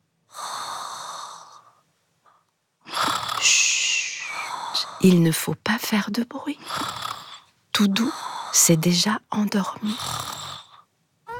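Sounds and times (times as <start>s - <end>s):
snoring: 0.3s - 1.7s, 2.9s - 5.0s, 6.6s - 8.8s, 9.8s - 10.8s
speech: 5.0s - 7.0s, 7.8s - 10.2s.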